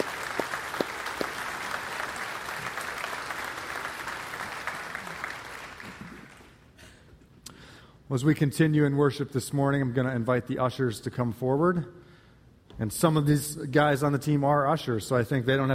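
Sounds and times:
round of applause: 0:00.0 - 0:06.7
speech: 0:08.1 - 0:12.0, 0:12.8 - 0:15.7.

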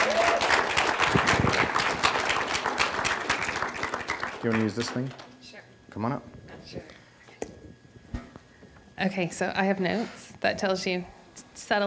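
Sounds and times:
audience applause: 0:00.0 - 0:05.3
speech: 0:04.4 - 0:05.2, 0:06.0 - 0:07.0, 0:09.0 - 0:11.8.

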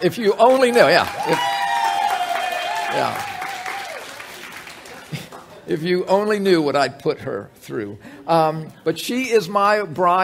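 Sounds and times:
speech: 0:00.0 - 0:01.5, 0:02.9 - 0:03.3, 0:05.7 - 0:10.2
audience clapping: 0:00.3 - 0:05.7.

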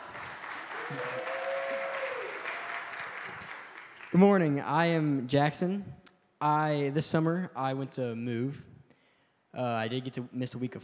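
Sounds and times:
crowd applause: 0:00.0 - 0:04.2
speech: 0:00.9 - 0:01.3, 0:04.1 - 0:08.7, 0:09.5 - 0:10.8.

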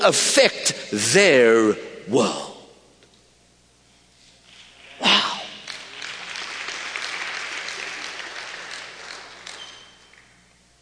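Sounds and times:
speech: 0:00.0 - 0:02.5
audience applause: 0:04.8 - 0:10.4.

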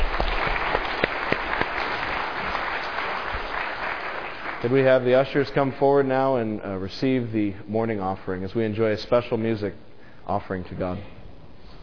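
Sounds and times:
audience clapping: 0:00.0 - 0:05.7
speech: 0:04.6 - 0:11.2.

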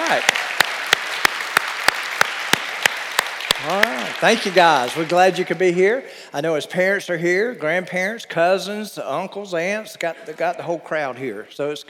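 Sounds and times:
sharp rhythmic clap: 0:00.0 - 0:05.7
audience applause: 0:00.0 - 0:05.8
speech: 0:00.1 - 0:00.4, 0:03.6 - 0:11.8.

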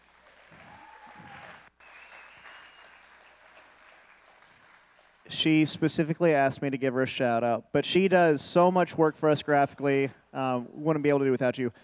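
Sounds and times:
audience applause: 0:00.0 - 0:05.6
speech: 0:05.3 - 0:11.8.

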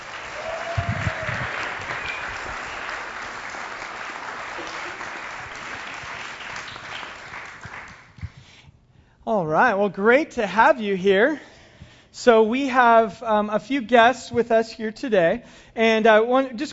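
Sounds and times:
church audience applauding to welcome guests onto the stage: 0:00.0 - 0:08.3
speech: 0:09.3 - 0:11.5, 0:12.2 - 0:16.7.

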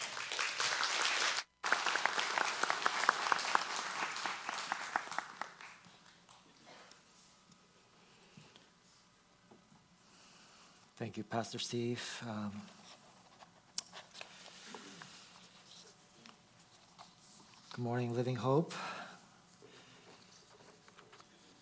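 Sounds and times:
church congregation applauding a guest speaker: 0:00.0 - 0:06.4
speech: 0:11.0 - 0:12.8, 0:17.8 - 0:18.9.

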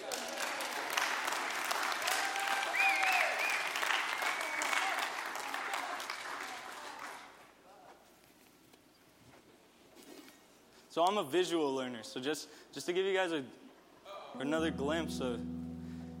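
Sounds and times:
audience applause for a stage assistant: 0:00.0 - 0:07.3
speech: 0:11.0 - 0:13.6, 0:14.3 - 0:15.6.

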